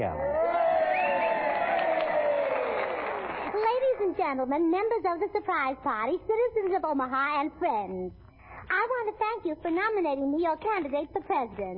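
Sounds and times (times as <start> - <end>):
speech: 0.0 - 0.3, 4.0 - 8.2, 8.8 - 11.7
crowd cheering: 0.0 - 4.0.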